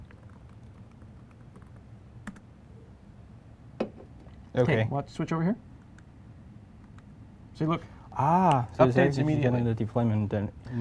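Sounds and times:
typing a password on a computer keyboard: 0.0 - 2.5
low steady hum: 0.0 - 10.7
speech: 4.6 - 5.7, 7.6 - 10.7.

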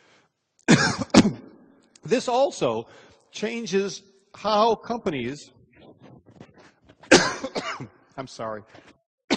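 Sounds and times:
person coughing after swallowing wrong: 0.7 - 1.5, 7.1 - 7.9
speech: 0.9 - 5.6, 8.2 - 8.9.

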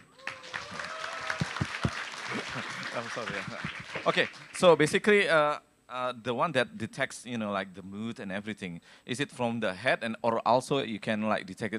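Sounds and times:
audience applause after a presentation on wearable devices: 0.0 - 4.6
speech: 2.6 - 11.7.

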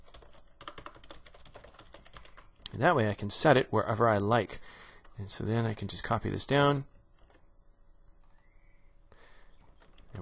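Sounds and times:
keyboard typing while writing code: 0.0 - 2.7, 6.9 - 7.6, 8.2 - 8.5, 9.6 - 10.2
speech: 2.8 - 6.9.

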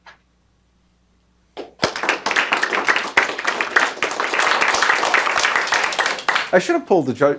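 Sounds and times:
crowd applause after a talk: 1.6 - 6.6
speech: 6.5 - 7.3.

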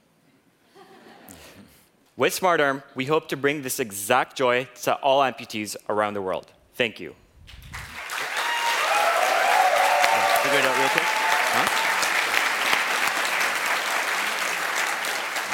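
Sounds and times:
speech: 2.2 - 7.6
large audience applause: 7.7 - 15.5
faint voices and cheers: 8.3 - 12.3.

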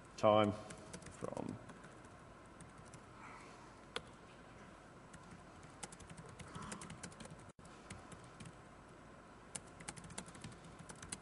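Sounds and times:
speech: 0.2 - 1.6
typing on a computer keyboard entering a query into Wolfram Alpha: 0.7 - 3.0, 5.1 - 8.6, 9.5 - 11.1.

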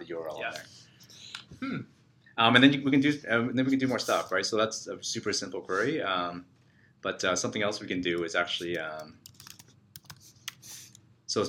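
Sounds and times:
speech: 0.1 - 9.3
typing on a computer keyboard entering a search query: 8.1 - 10.7.

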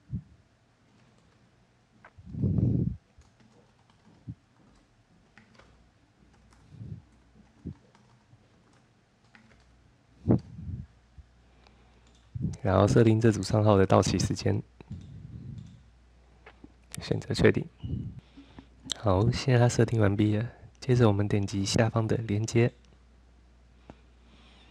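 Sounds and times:
keyboard keys tapped entering account name and password: 3.2 - 5.7, 7.4 - 9.7
speech: 12.6 - 14.8, 17.1 - 18.0, 19.0 - 22.8.

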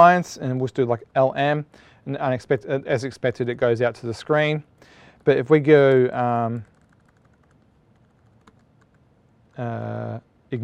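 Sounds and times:
speech: 0.0 - 6.7, 9.6 - 10.6
typing a command on a computer keyboard: 5.8 - 9.0.

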